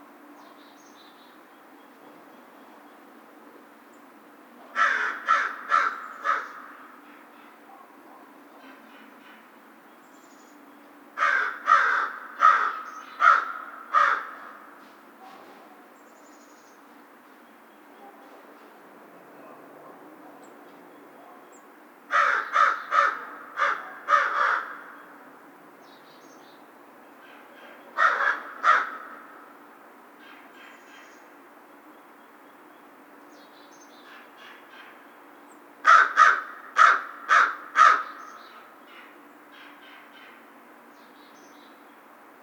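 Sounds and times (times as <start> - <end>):
American crow cawing: 4.8 - 7.0, 11.2 - 14.8, 22.1 - 25.0, 28.0 - 29.4, 35.8 - 40.3.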